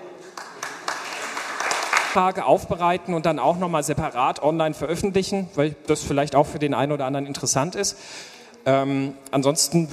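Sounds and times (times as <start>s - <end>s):
audience applause: 0.0s - 2.2s
speech: 2.1s - 9.9s.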